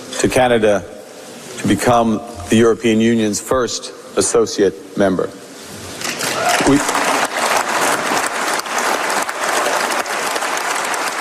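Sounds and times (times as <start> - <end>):
speech: 0.2 - 1.0, 1.6 - 5.4, 6.7 - 7.0
assembly applauding loudly: 6.0 - 11.2.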